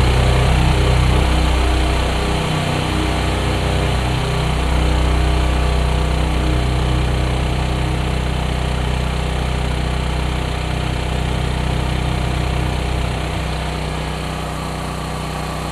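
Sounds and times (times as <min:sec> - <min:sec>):
portable gasoline-powered generator engine drone: 0:00.0 - 0:15.7.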